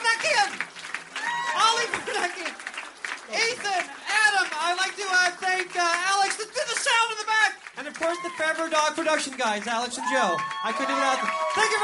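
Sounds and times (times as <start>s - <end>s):
crowd applause: 0.0s - 11.8s
scattered cheers: 1.1s - 2.8s, 7.8s - 8.8s, 9.8s - 11.8s
speech: 8.1s - 11.8s.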